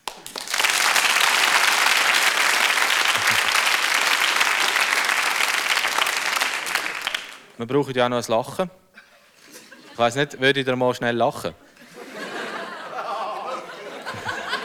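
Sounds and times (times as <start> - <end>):
audience applause: 0.0 - 7.6, 12.0 - 14.6
laughter: 3.0 - 3.9, 8.9 - 10.4, 11.6 - 14.6
speech: 7.6 - 8.8, 10.0 - 11.6.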